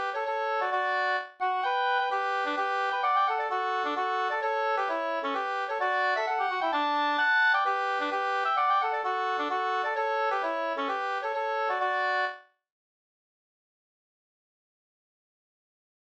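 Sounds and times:
hambo polska folk dance tune: 0.0 - 12.4.

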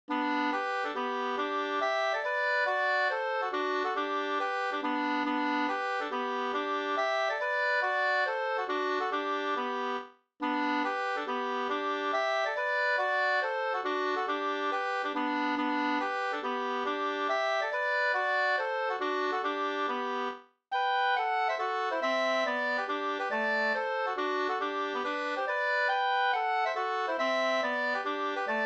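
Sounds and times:
two-part polska folk dance tune: 0.1 - 28.6.

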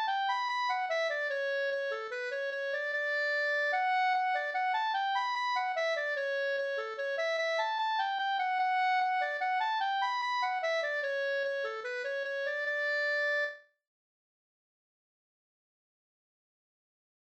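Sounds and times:
mazurka: 0.0 - 13.6.

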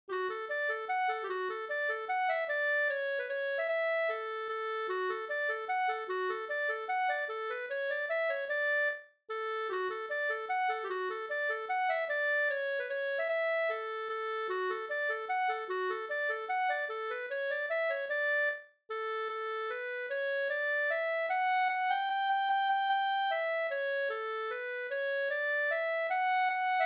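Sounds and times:
waltz in D major: 0.2 - 26.8.

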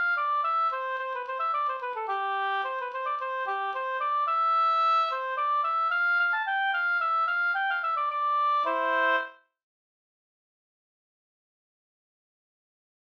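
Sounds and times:
slangpolska folk dance tune: 0.0 - 9.4.

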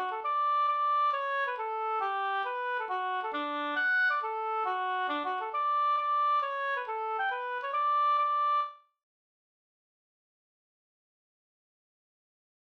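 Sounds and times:
hambo polska folk dance tune: 0.0 - 8.7.

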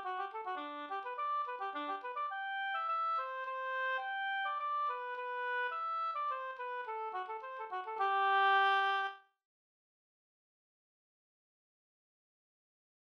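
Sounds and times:
polska folk tune in G major: 0.0 - 9.1.

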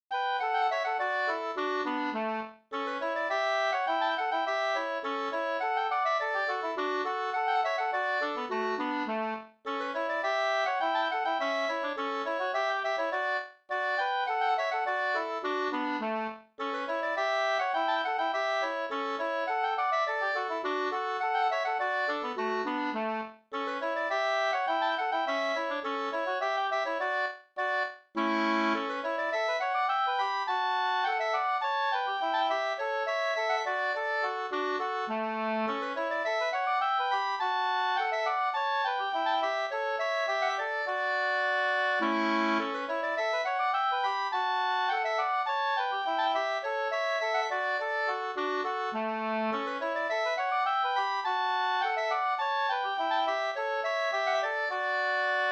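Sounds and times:
two-part polska: 0.1 - 55.4.

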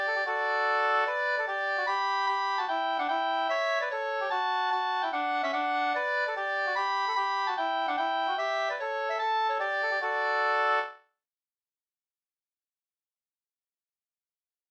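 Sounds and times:
hambo polka music: 0.0 - 11.0.

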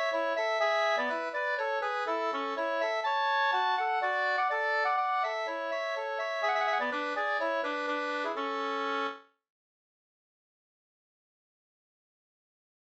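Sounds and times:
polska dance tune: 0.0 - 9.2.

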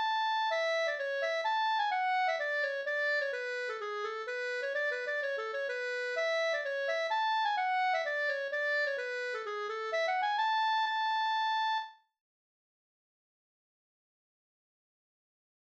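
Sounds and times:
pols folk dance tune: 0.0 - 11.9.

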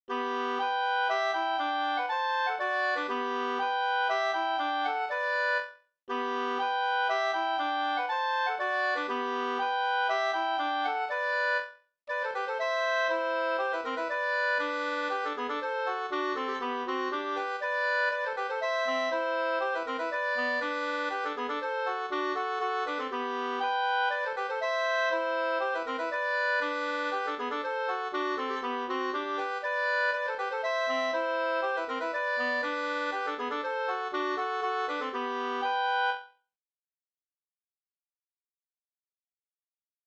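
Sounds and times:
two-part polska folk dance tune: 0.1 - 36.3.

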